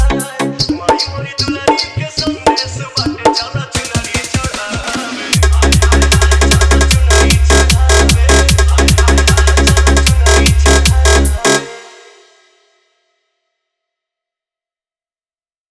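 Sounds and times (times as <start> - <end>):
Navratri DJ song EDM drop mix: 0.0 - 11.9.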